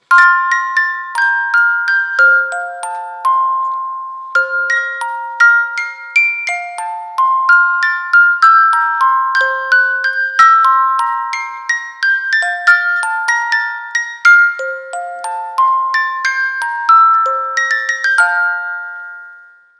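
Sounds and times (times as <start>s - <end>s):
lullaby music: 0.0s - 19.7s.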